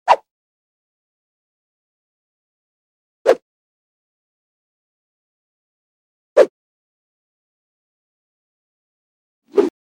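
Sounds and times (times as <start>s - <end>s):
stick swung by hand: 9.5s - 9.7s.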